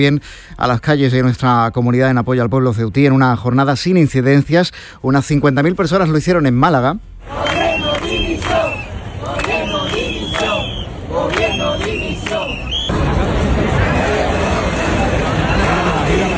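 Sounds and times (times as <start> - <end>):
speech: 0.0 - 7.6
crowd chanting slogans of support: 7.2 - 16.3.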